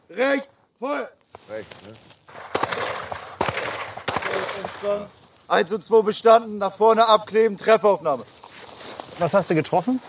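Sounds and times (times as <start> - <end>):
speech: 0.1 - 3.1, 4.6 - 8.4, 9.2 - 10.0
gunshots from target shooting at a range over 15 metres: 2.3 - 5.1.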